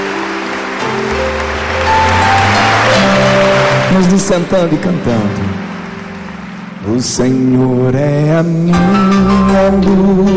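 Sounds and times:
church congregation applauding during a service: 0:00.0 - 0:08.2
sustained keyboard chords: 0:00.0 - 0:10.3
speech: 0:04.0 - 0:05.5, 0:06.8 - 0:10.3.

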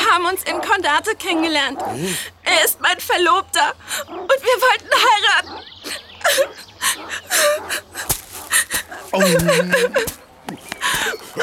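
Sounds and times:
speech: 0:00.2 - 0:11.4
laughter: 0:04.4 - 0:11.4
person crying: 0:08.6 - 0:10.2.

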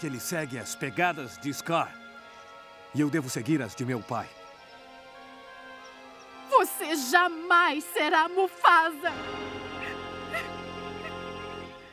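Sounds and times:
speech: 0:00.0 - 0:02.0, 0:02.9 - 0:04.4, 0:06.9 - 0:09.7
soft whimpering sobs: 0:09.8 - 0:11.2.

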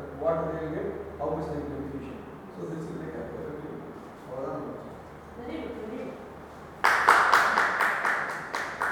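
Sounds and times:
speech: 0:00.3 - 0:03.6
hands clapping with both hands raised: 0:06.8 - 0:08.8.

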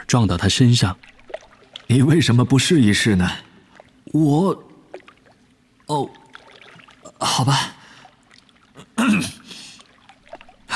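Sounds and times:
speech: 0:00.1 - 0:01.2, 0:01.9 - 0:03.5, 0:04.1 - 0:04.7, 0:05.9 - 0:06.2, 0:07.4 - 0:07.7
raspy throat clearing: 0:08.8 - 0:09.5.

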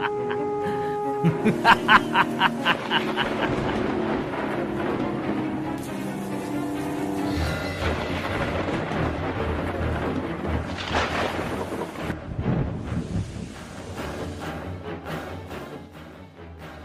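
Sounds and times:
laughter: 0:00.0 - 0:00.5, 0:01.2 - 0:03.9
steady roar of heavy rain: 0:00.0 - 0:15.1
thunder rumbling: 0:01.6 - 0:14.2.

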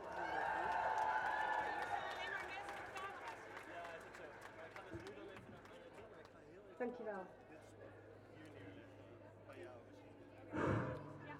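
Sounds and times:
crowd applause: 0:00.0 - 0:04.8
speech: 0:06.8 - 0:07.4.

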